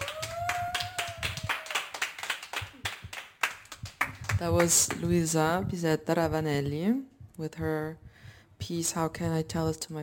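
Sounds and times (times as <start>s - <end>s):
audience applause: 0.0s - 4.2s
speech: 4.4s - 8.0s, 8.6s - 10.0s.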